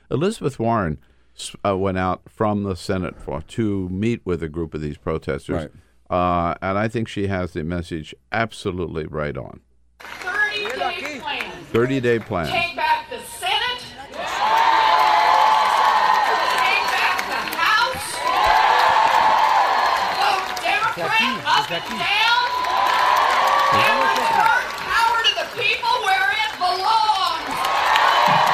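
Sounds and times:
speech: 0:00.1 - 0:10.2, 0:11.7 - 0:12.7, 0:21.6 - 0:22.2
scattered clapping: 0:10.0 - 0:12.6, 0:14.1 - 0:28.5
large supportive crowd cheering and shouting: 0:13.9 - 0:28.5.

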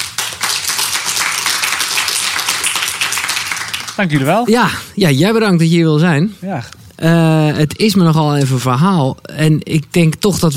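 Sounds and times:
audience applause: 0:00.0 - 0:04.4
speech: 0:04.0 - 0:10.5.

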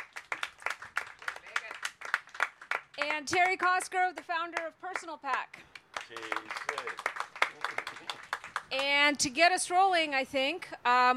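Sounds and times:
audience applause: 0:00.0 - 0:03.8, 0:05.7 - 0:08.8
speech: 0:03.0 - 0:07.7, 0:08.7 - 0:11.1.

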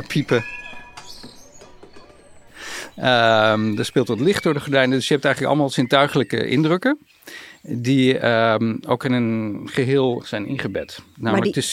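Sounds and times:
speech: 0:00.0 - 0:00.6, 0:03.0 - 0:11.7
small birds chirping: 0:00.0 - 0:11.7
hiss: 0:02.5 - 0:03.2, 0:07.0 - 0:09.7.

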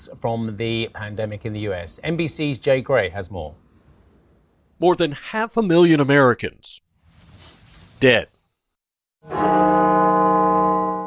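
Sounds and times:
speech: 0:00.0 - 0:03.6, 0:04.8 - 0:06.8, 0:08.0 - 0:08.3, 0:09.2 - 0:09.8
bells at the National Cathedral tolling: 0:09.2 - 0:11.0.

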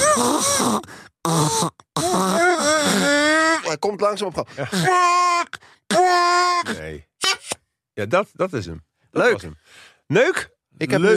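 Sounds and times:
voice imitating elephant trumpeting: 0:00.0 - 0:03.8, 0:04.6 - 0:07.6
speech: 0:00.4 - 0:02.3, 0:03.7 - 0:11.1.

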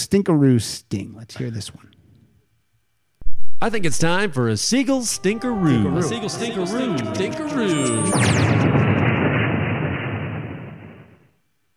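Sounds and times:
speech: 0:00.0 - 0:02.0, 0:03.6 - 0:08.8
falling whine of a plane crash sound effect: 0:03.2 - 0:11.1
rumbling explosive roar of a plane crash sound effect: 0:04.7 - 0:11.1.

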